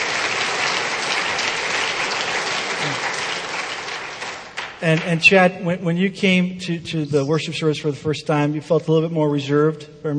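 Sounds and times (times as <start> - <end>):
audience applause: 0.0 - 4.8
speech: 4.8 - 10.1.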